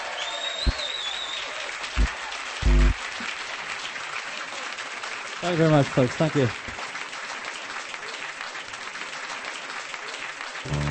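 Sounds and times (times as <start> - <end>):
audience applause welcoming a performer to the stage: 0.0 - 10.8
low thumps: 2.0 - 3.0
speech: 5.4 - 6.7.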